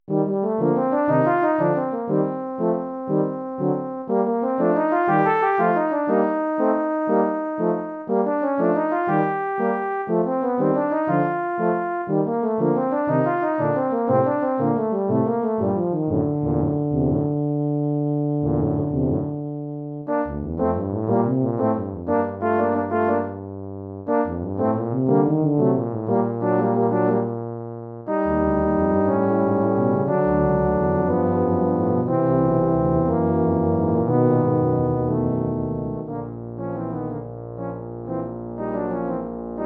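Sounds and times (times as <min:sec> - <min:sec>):
tuba march: 0:00.1 - 0:17.4, 0:18.4 - 0:27.4, 0:28.1 - 0:39.6.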